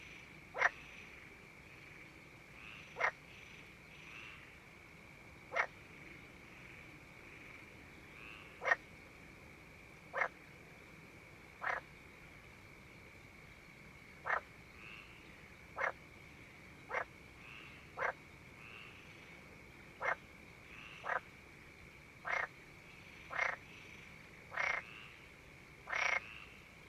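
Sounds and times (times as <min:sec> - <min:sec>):
frog croaks: 0:00.0 - 0:04.6, 0:05.5 - 0:08.9, 0:10.0 - 0:10.5, 0:11.5 - 0:12.3, 0:14.2 - 0:21.4, 0:22.2 - 0:26.7.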